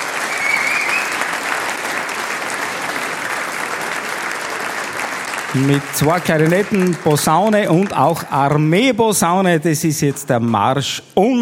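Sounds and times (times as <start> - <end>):
audience applause: 0.0 - 9.0
speech: 5.5 - 11.4.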